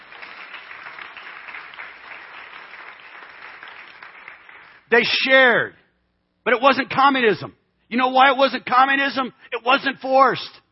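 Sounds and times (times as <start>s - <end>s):
audience applause: 0.0s - 4.8s
speech: 4.9s - 5.8s, 6.4s - 10.6s.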